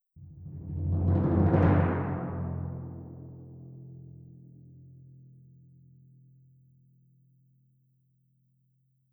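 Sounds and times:
timpani: 0.2s - 3.8s.

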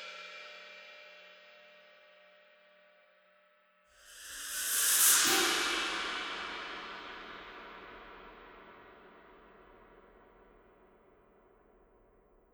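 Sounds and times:
cymbal loop: 4.1s - 8.1s.

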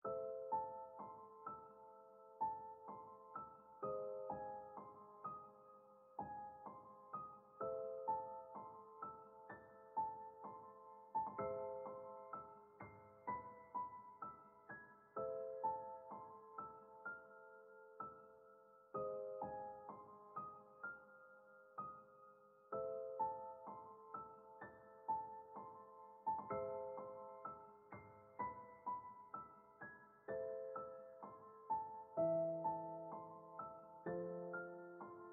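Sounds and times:
mausoleum music: 0.0s - 35.3s.

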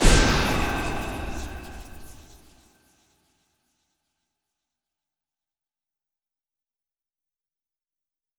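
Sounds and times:
hero fireball: 0.0s - 2.7s.

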